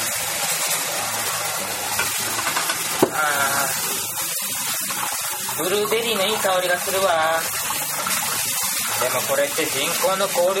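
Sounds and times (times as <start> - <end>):
running water while washing a bowl: 0.0 - 10.5
speech: 5.6 - 7.6, 9.0 - 10.5.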